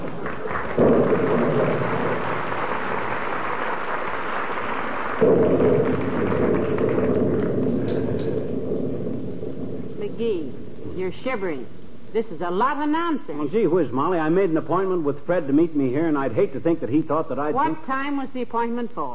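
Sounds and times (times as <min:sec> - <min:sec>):
thunder rumbling: 0:00.0 - 0:03.9, 0:04.6 - 0:11.2
rain: 0:00.0 - 0:10.0
speech: 0:05.2 - 0:06.1, 0:10.2 - 0:19.1.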